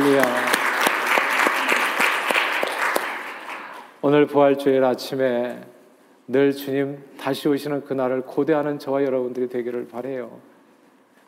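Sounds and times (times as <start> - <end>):
audience applauding: 0.0 - 4.0
speech: 0.2 - 0.4, 4.1 - 10.5.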